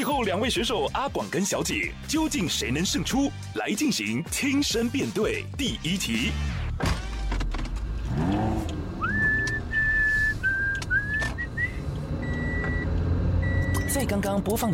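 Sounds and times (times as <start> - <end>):
speech: 0.1 - 7.0, 14.1 - 14.7
car sounds: 6.0 - 14.7
whistled radio station jingle: 9.0 - 11.8.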